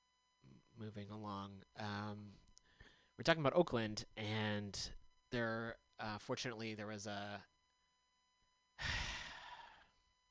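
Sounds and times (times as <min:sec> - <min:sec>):
speech: 0:00.8 - 0:02.5, 0:03.2 - 0:07.5
deep breath: 0:02.6 - 0:03.2, 0:08.8 - 0:10.0.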